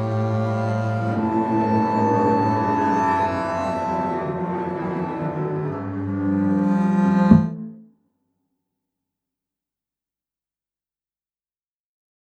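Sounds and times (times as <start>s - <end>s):
five double basses playing: 0.5s - 7.9s.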